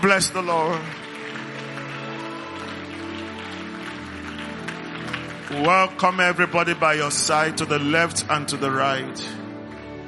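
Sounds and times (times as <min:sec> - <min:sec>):
speech: 0:00.0 - 0:01.1, 0:05.5 - 0:09.4
audience clapping: 0:00.0 - 0:08.2.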